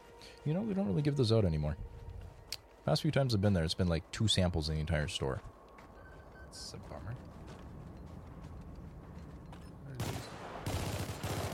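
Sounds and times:
speech: 0.4s - 2.0s, 2.8s - 5.6s, 6.5s - 7.4s
gunfire in the video game Helldivers: 10.0s - 11.5s.

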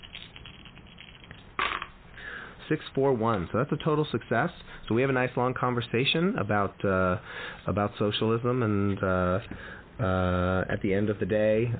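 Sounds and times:
three dice rattling and clattering across a hard surface: 0.0s - 2.0s
speech: 2.7s - 11.7s.

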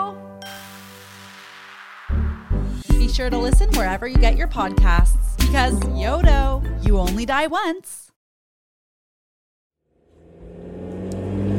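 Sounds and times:
speech: 3.1s - 8.0s
car driving fast, engine revving: 10.0s - 11.5s.

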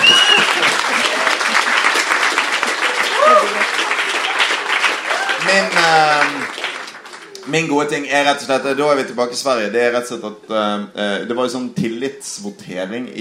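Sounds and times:
audience applause: 0.0s - 7.8s
speech: 7.5s - 13.1s.

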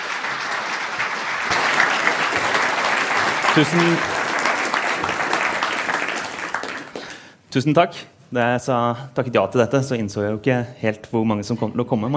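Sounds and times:
warm audience applause: 0.0s - 7.4s
speech: 3.6s - 4.1s, 7.6s - 12.1s.

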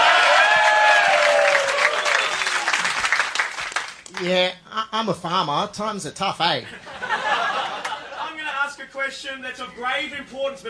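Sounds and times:
cheers and whoops: 0.0s - 2.8s
crowd applauding: 0.0s - 4.2s
speech: 4.2s - 6.9s, 8.9s - 10.6s
laughter: 6.7s - 8.7s.

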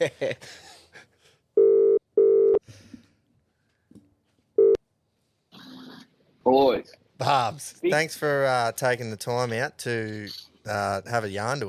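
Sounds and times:
speech: 0.0s - 0.7s, 6.4s - 11.6s
telephone ringback tones of a phone call being placed: 1.6s - 2.6s.

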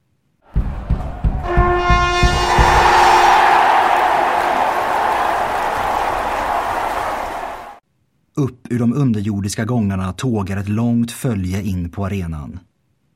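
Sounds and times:
arena crowd cheering: 0.5s - 7.8s
trumpet fanfare: 1.5s - 7.8s
speech: 8.4s - 12.7s.

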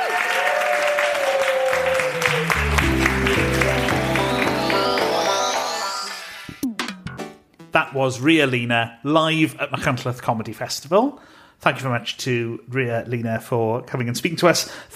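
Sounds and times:
audience applause: 0.0s - 6.4s
music: 1.8s - 8.1s
speech: 7.9s - 14.9s.

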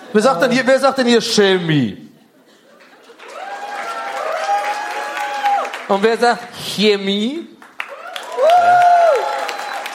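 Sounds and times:
speech: 0.1s - 2.0s, 5.9s - 7.5s
audience clapping to vote: 2.7s - 6.3s, 7.6s - 9.9s.

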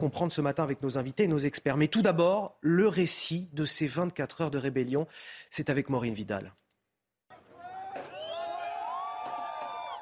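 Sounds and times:
speech: 0.0s - 6.6s
crowd cheering and shouting: 7.3s - 10.0s
high whistles: 8.0s - 10.0s.

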